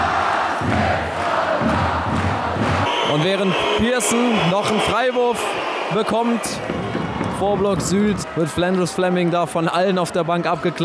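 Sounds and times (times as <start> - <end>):
basketball fans chanting: 0.0 - 7.2
basketball fans in an arena roaring: 0.0 - 10.8
speech: 3.1 - 10.8.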